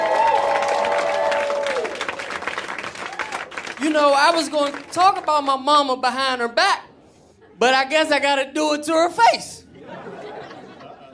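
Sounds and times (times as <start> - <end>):
high whoops and cheers: 0.0 - 2.3, 3.0 - 3.5
audience applause: 0.0 - 5.2
speech: 3.9 - 6.8, 7.6 - 9.6
laughter: 9.7 - 11.1.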